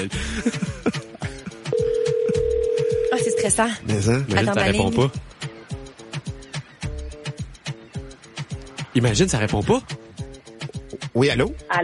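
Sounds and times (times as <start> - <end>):
speech: 0.0 - 0.6, 3.5 - 5.2, 9.0 - 10.0, 11.2 - 11.8
laughter: 0.0 - 1.7
telephone number being dialed with short tones and clicks: 1.8 - 3.6.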